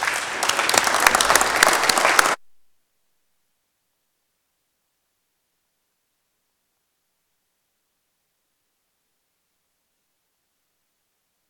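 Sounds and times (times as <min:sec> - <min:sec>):
applause for a birthday: 0:00.0 - 0:02.4.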